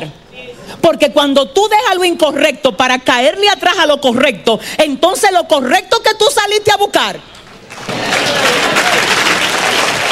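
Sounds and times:
speech: 0.8 - 9.2
crowd applause: 7.7 - 10.1.

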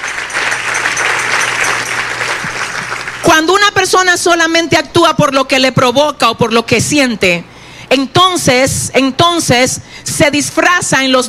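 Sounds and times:
audience applause: 0.0 - 3.3
speech: 3.9 - 11.2.

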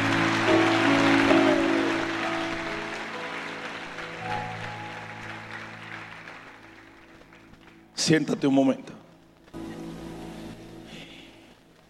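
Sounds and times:
audience applause: 0.0 - 8.3
speech: 8.1 - 9.0.

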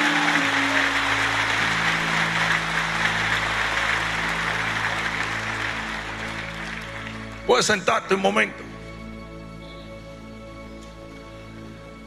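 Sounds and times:
audience applause: 0.0 - 7.7
speech: 7.5 - 8.7.

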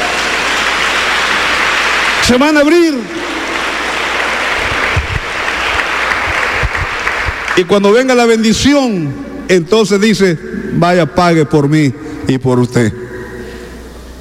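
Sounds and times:
audience applause: 0.0 - 7.8
speech: 2.3 - 3.3, 7.6 - 13.0.

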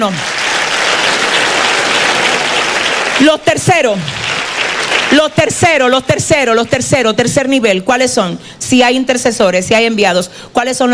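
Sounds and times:
speech: 0.0 - 0.3, 3.2 - 4.2, 5.1 - 10.9
audience applauding: 0.0 - 5.5.

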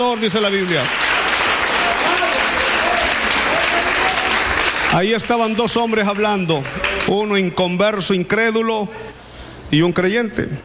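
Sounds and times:
speech: 0.0 - 1.1, 4.9 - 9.0, 9.7 - 10.6
crowd applause: 0.0 - 7.2.

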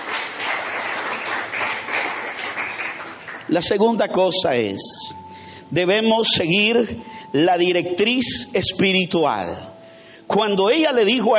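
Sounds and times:
crowd applauding: 0.0 - 3.9
speech: 3.5 - 9.7, 10.3 - 11.3.

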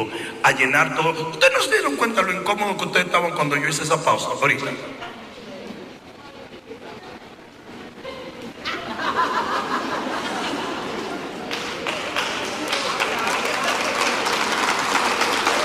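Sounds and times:
speech: 0.4 - 5.1
laughter: 7.9 - 12.1
audience applause: 10.0 - 15.6.

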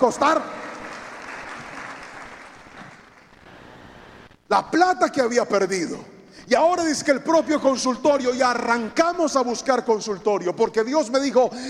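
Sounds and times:
speech: 0.0 - 0.6, 4.5 - 11.6
audience applause: 0.0 - 3.5.

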